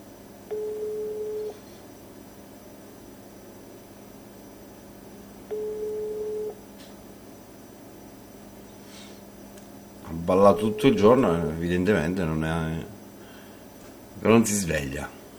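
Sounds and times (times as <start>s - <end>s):
low hum: 0.0s - 15.3s
unanswered outgoing phone call ringback tones: 0.5s - 1.6s, 5.5s - 6.6s
speech: 10.3s - 13.0s, 14.2s - 15.1s.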